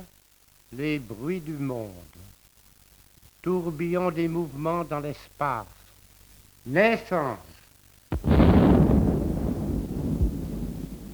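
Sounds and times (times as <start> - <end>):
speech: 0.7 - 2.4, 3.4 - 5.8, 6.6 - 7.5
artillery shell explosion: 8.1 - 11.1.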